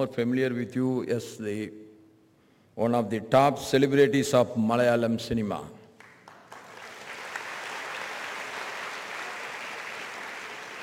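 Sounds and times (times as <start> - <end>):
speech: 0.0 - 1.8, 2.8 - 5.8
audience clapping: 6.0 - 10.8.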